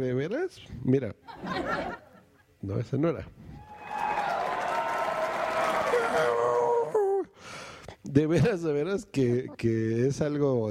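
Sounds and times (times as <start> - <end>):
speech: 0.0 - 2.0, 2.6 - 3.5, 6.1 - 6.6, 8.0 - 10.7
laughter: 1.3 - 2.5
canned applause: 3.6 - 6.9
crowd cheering: 3.6 - 7.0.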